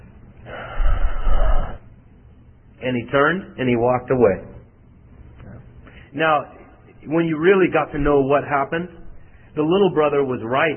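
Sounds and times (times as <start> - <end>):
voice imitating a sharp forceful breath in: 0.4 - 1.8
speech: 2.8 - 4.5, 6.1 - 9.0, 9.6 - 10.7.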